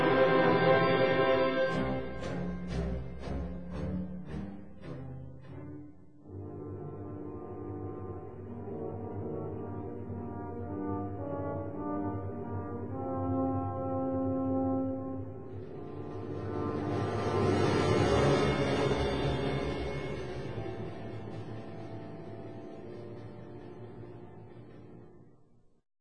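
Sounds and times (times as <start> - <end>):
French horn: 0.0 - 3.3, 6.2 - 21.4.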